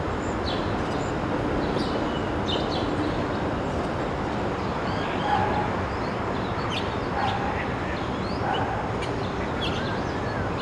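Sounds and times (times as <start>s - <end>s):
town ambience: 0.0s - 10.6s.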